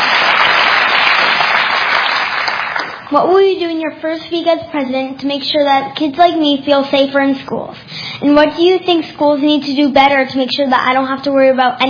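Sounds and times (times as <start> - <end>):
audience applause at a CNN town hall event: 0.0 - 3.1
speech: 3.1 - 11.8.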